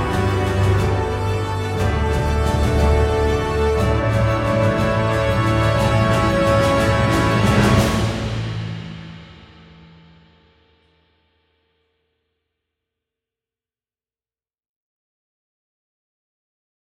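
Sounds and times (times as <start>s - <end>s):
orchestral music: 0.0s - 10.1s.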